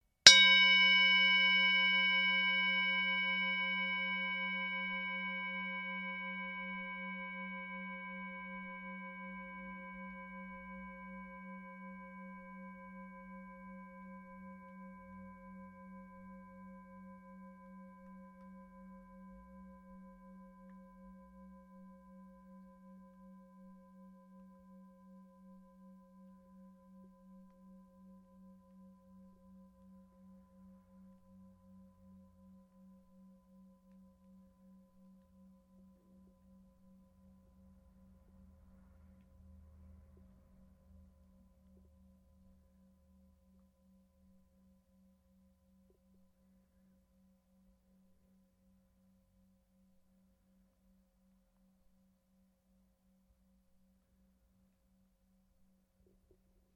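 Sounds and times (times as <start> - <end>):
Tibetan brass singing bowl struck: 0.3 - 18.6.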